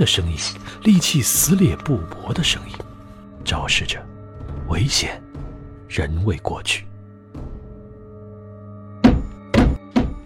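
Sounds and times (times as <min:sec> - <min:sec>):
speech: 0:00.0 - 0:04.1, 0:04.7 - 0:05.2, 0:05.9 - 0:06.9
stomps on a wooden floor: 0:03.4 - 0:05.7, 0:09.0 - 0:10.2.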